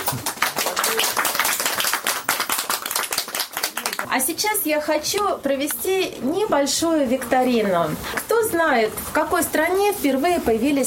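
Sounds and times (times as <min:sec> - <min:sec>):
audience clapping: 0:00.0 - 0:04.1
speech: 0:04.1 - 0:10.8.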